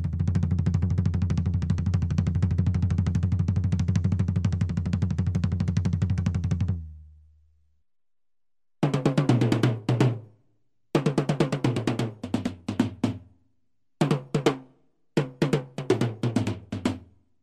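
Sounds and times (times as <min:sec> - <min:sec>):
tom-tom drum set: 0:00.0 - 0:06.9, 0:08.8 - 0:10.3, 0:11.0 - 0:13.3, 0:14.0 - 0:17.1.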